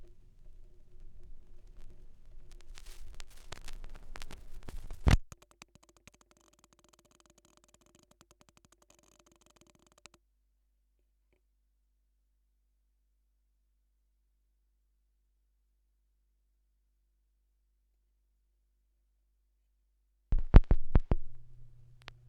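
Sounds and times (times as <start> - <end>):
vinyl record noise: 0.0 - 5.4, 20.3 - 22.2.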